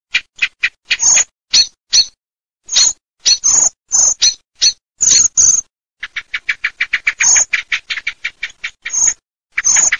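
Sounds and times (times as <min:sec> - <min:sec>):
common blackbird chack calls: 0:00.1 - 0:09.9.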